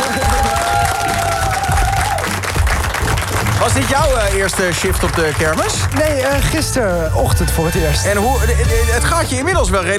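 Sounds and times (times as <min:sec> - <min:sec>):
whoops: 0:00.0 - 0:02.4
audience applause and cheering: 0:00.0 - 0:06.7
speech: 0:03.8 - 0:09.9.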